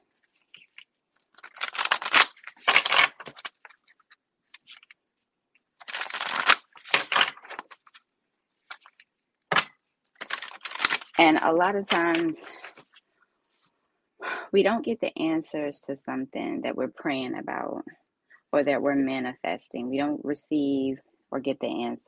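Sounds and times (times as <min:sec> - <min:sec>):
moon oracle cards being shuffled: 0:00.2 - 0:05.0, 0:05.8 - 0:13.7
speech: 0:11.2 - 0:12.5, 0:14.5 - 0:22.0.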